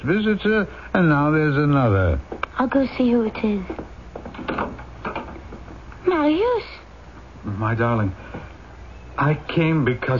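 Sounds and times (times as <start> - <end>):
speech: 0.0 - 3.8, 6.1 - 6.8, 7.4 - 8.5, 9.2 - 10.1
knocking on a door: 3.6 - 5.8.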